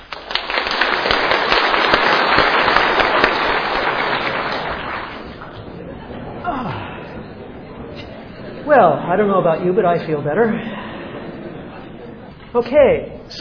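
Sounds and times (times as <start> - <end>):
group clapping: 0.0 - 5.7
laughter: 2.8 - 8.9, 9.8 - 12.5
speech: 8.8 - 10.7, 12.5 - 13.3.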